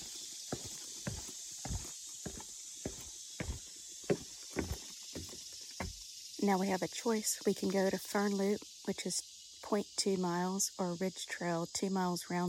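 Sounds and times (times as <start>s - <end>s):
footsteps on a trail at Gold Head Branch, Keystone Heights: 0.0s - 6.0s
speech: 6.4s - 12.4s.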